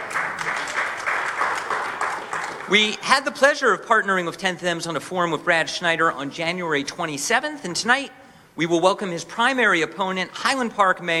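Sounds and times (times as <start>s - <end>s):
audience clapping: 0.0s - 3.0s
speech: 2.7s - 11.1s.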